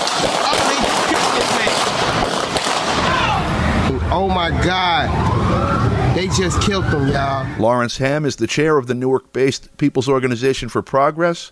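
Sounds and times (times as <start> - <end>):
police gunshots: 0.0 - 3.8
speech: 4.2 - 11.4.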